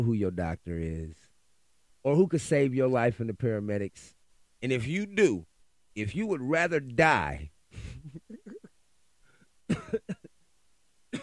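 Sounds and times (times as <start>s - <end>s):
speech: 0.0s - 1.3s, 2.0s - 8.2s
marijuana smoker coughing from the lungs: 7.8s - 8.7s, 9.7s - 10.3s.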